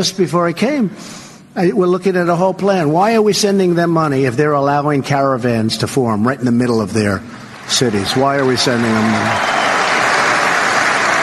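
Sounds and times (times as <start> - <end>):
speech: 0.0 - 9.6
audience applause: 7.5 - 11.2.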